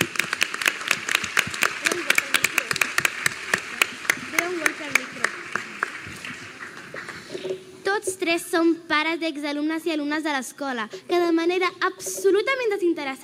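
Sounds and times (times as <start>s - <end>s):
audience loud applause: 0.0s - 7.6s
speech: 8.2s - 13.2s.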